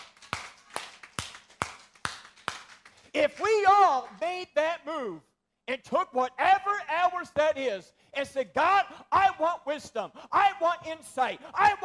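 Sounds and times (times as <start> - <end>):
sharp hand claps: 0.0 - 4.2
speech: 3.1 - 11.8.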